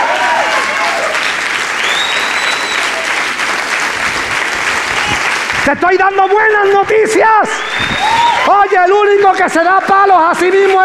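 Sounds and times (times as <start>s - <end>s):
audience applause: 0.0s - 6.9s, 7.5s - 10.8s
high whistles: 1.2s - 3.0s, 7.5s - 8.5s
speech: 5.7s - 10.8s.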